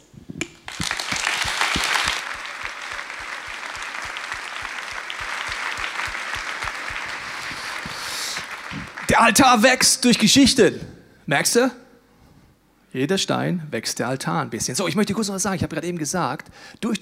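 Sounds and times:
audience applause: 0:00.7 - 0:09.4
speech: 0:09.2 - 0:11.8, 0:13.0 - 0:17.0.

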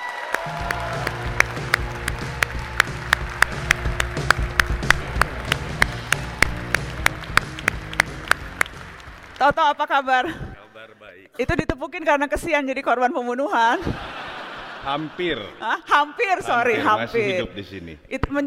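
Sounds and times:
audience applause: 0:00.0 - 0:09.8
speech: 0:09.4 - 0:10.4, 0:11.4 - 0:14.2, 0:14.8 - 0:18.4
laughter: 0:13.7 - 0:17.4.

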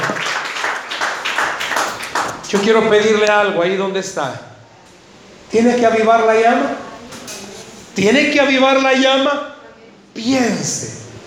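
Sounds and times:
crowd applause: 0:00.0 - 0:02.8
speech: 0:02.5 - 0:04.5, 0:05.5 - 0:06.8, 0:08.0 - 0:09.5, 0:10.2 - 0:11.0.

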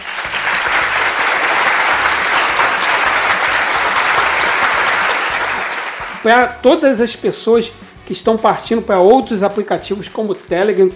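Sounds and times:
hand clapping: 0:00.0 - 0:06.5
speech: 0:06.2 - 0:10.9.

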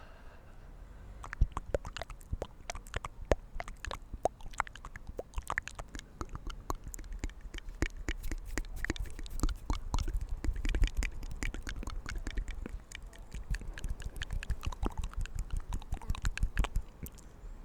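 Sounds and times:
soft mouth and hand sounds outdoors: 0:01.1 - 0:17.3.

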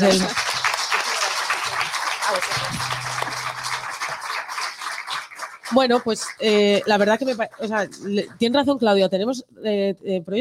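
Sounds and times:
speech: 0:00.0 - 0:00.4, 0:02.3 - 0:03.8, 0:05.7 - 0:10.4
audience applause: 0:00.0 - 0:08.3.

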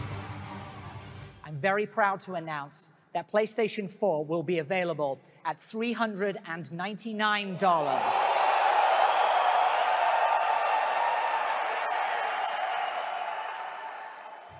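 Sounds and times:
speech: 0:01.5 - 0:08.3
large audience cheering and applause at a press conference: 0:07.8 - 0:14.5.

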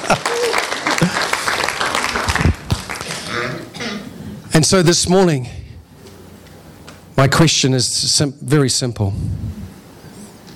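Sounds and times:
audience applause: 0:00.0 - 0:03.3
speech: 0:04.6 - 0:05.6, 0:07.2 - 0:09.8.

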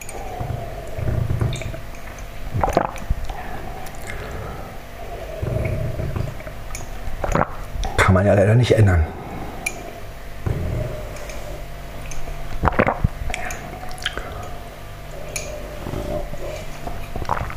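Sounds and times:
chewing a caramel: 0:00.0 - 0:08.0, 0:12.0 - 0:17.5
speech: 0:08.2 - 0:09.2.

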